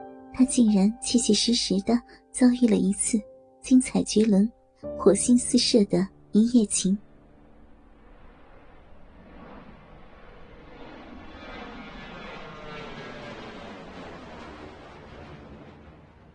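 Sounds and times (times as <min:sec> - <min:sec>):
speech: 0:00.4 - 0:07.0
airplane in flight: 0:07.0 - 0:16.3.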